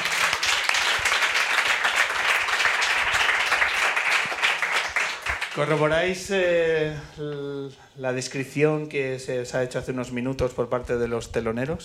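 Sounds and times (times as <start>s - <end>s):
sustained audience applause for the band: 0.0s - 6.2s
speech: 5.6s - 11.8s.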